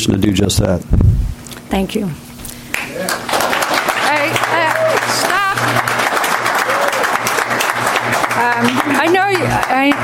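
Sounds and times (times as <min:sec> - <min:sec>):
speech: 0:00.0 - 0:01.0, 0:01.7 - 0:02.3, 0:08.4 - 0:10.0
audience applause: 0:02.8 - 0:10.0.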